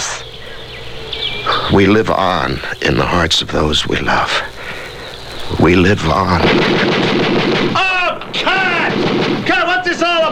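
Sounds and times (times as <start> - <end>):
excited voices: 0.0 - 10.3
speech: 1.7 - 4.5, 5.5 - 10.3
dull gunfire booms: 6.1 - 10.3.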